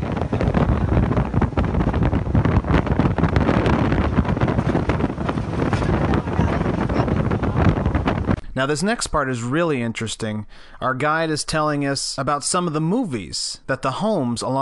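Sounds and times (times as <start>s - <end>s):
boat speeding across open water: 0.0s - 8.4s
wind: 0.0s - 13.3s
speech: 8.6s - 14.6s.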